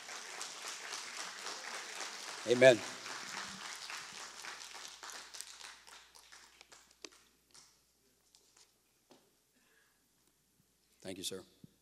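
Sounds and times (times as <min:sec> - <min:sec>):
audience applause: 0:00.0 - 0:07.2
speech: 0:02.4 - 0:03.0, 0:11.2 - 0:11.7.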